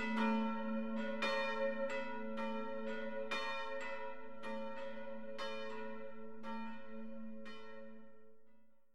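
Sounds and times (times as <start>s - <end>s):
bells ringing in Mangskog: 0.0s - 6.7s.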